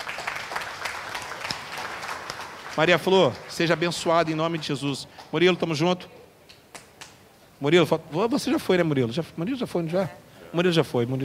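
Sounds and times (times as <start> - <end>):
audience clapping: 0.0 - 5.7, 6.5 - 7.2
speech: 2.8 - 6.2, 7.6 - 11.2.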